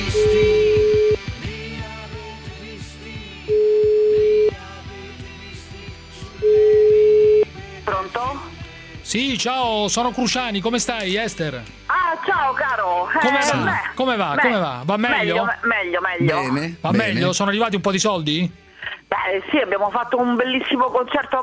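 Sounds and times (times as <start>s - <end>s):
telephone ringback tones: 0.2s - 1.2s, 3.5s - 4.5s, 6.4s - 7.5s
speech: 9.1s - 18.6s, 19.3s - 21.4s.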